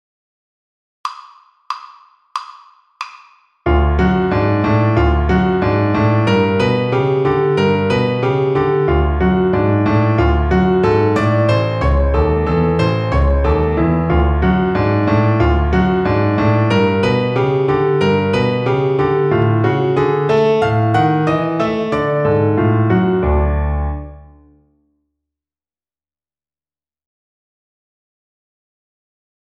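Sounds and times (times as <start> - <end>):
piano accompaniment: 3.7 - 24.6.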